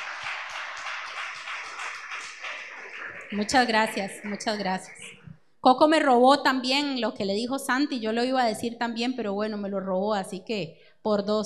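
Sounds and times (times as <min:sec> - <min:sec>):
audience applause: 0:00.0 - 0:05.3
speech: 0:03.3 - 0:11.4.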